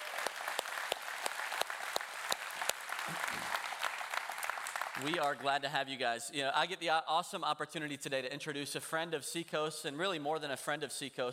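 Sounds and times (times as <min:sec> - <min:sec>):
church congregation applauding a welcome: 0:00.0 - 0:05.5
speech: 0:03.1 - 0:03.6, 0:05.0 - 0:11.3.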